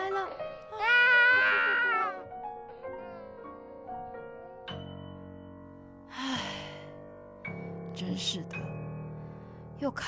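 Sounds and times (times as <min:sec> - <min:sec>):
baby crying: 0:00.0 - 0:02.3
speech: 0:08.0 - 0:08.7, 0:09.8 - 0:10.0.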